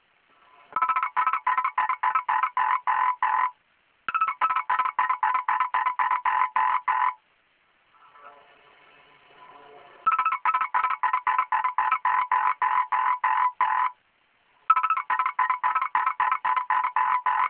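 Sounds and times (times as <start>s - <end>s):
frog croaking: 0.8s - 7.2s, 10.1s - 14.0s, 14.7s - 17.4s.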